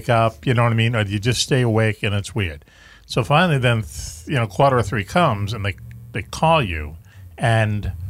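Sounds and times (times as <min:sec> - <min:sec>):
speech: 0:00.0 - 0:08.0
truck passing outside: 0:05.5 - 0:07.3.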